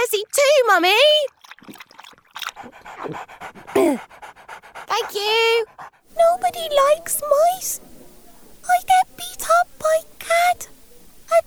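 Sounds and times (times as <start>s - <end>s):
speech: 0.0s - 1.8s, 2.6s - 8.0s, 8.7s - 11.4s
dog panting after running: 2.4s - 11.4s
dog whining: 6.1s - 11.4s.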